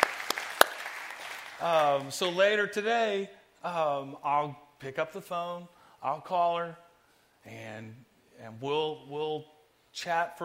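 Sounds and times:
audience applause: 0.0 - 2.1
speech: 1.6 - 6.8, 7.4 - 10.4.

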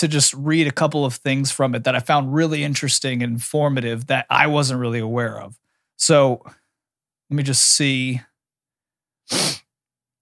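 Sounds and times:
speech: 0.0 - 6.6, 7.3 - 8.3, 9.3 - 9.6
sniffling: 9.3 - 9.7.

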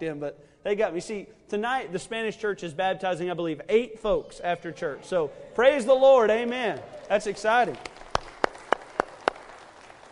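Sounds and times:
speech: 0.0 - 7.9
audience clapping in unison: 6.2 - 10.1.

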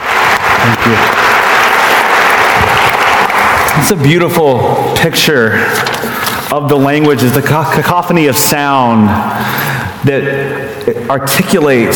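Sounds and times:
room full of people applauding: 0.0 - 4.7
speech: 0.6 - 1.2, 3.8 - 11.9.

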